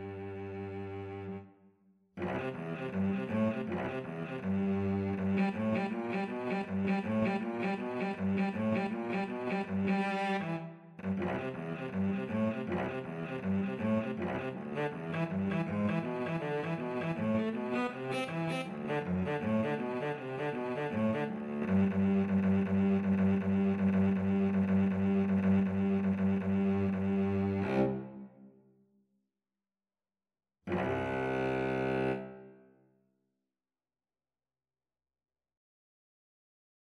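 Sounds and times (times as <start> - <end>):
cello duet: 0.0 - 1.4, 2.2 - 28.4, 30.7 - 32.5.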